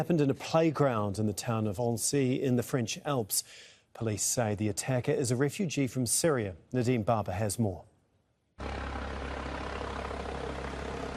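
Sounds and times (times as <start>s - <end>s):
speech: 0.0s - 7.9s, 8.6s - 9.0s
helicopter landing by Lake Annecy, engine and rotor roar: 8.6s - 11.1s.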